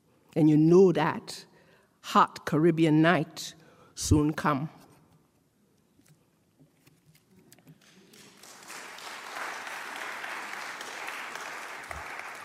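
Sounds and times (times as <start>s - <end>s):
speech: 0.4s - 4.8s
audience applause: 8.0s - 12.4s.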